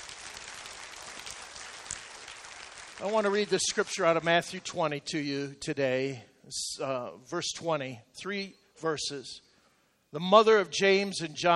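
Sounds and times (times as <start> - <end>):
church audience clapping for mothers: 0.0 - 4.3
speech: 3.0 - 9.4, 10.1 - 11.5.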